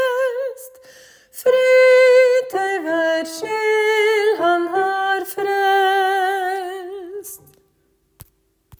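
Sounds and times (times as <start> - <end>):
tenor singing a Christmas verse: 1.4 - 7.5.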